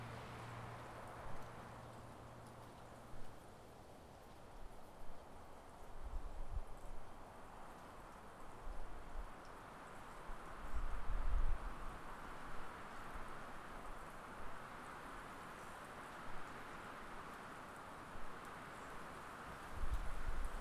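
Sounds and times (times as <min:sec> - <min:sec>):
car passing in the country: 0:00.0 - 0:02.1
wind in the country: 0:00.0 - 0:20.5.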